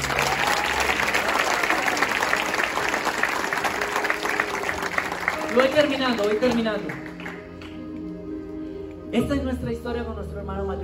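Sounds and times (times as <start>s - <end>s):
audience applause: 0.0s - 7.8s
speech: 5.6s - 7.1s, 9.1s - 10.8s.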